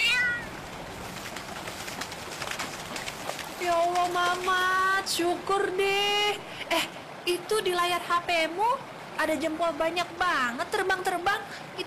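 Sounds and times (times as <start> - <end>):
cat meowing: 0.0 - 0.6
hissy noise: 0.0 - 11.8
speech: 3.6 - 11.8.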